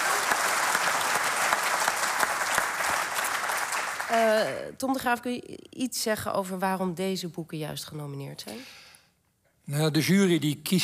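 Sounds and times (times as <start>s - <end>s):
audience applause for the nominees: 0.0s - 4.6s
speech: 4.1s - 8.8s, 9.7s - 10.8s.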